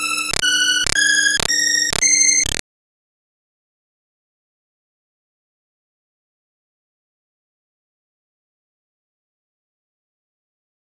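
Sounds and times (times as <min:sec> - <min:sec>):
Hammond B3 organ: 0:00.0 - 0:02.5.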